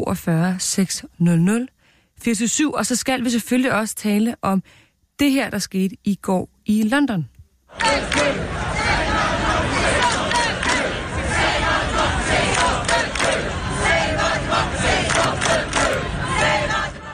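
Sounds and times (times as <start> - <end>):
speech: 0.1 - 8.6
protest crowd chanting outside Westminster: 7.7 - 17.1.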